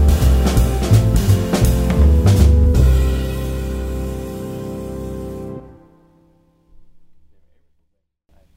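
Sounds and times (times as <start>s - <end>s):
uptempo music: 0.0s - 6.1s.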